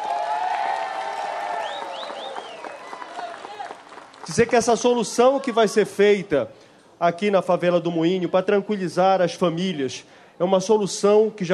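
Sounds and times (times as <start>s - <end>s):
crowd applause: 0.0s - 5.6s
speech: 4.3s - 11.5s.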